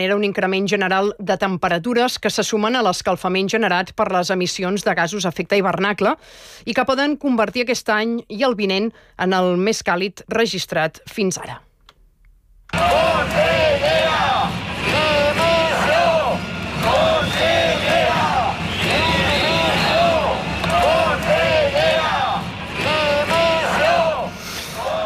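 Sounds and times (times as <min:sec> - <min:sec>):
speech: 0:00.0 - 0:11.7
protest crowd chanting slogans at a demonstration in Valencia: 0:12.7 - 0:25.0.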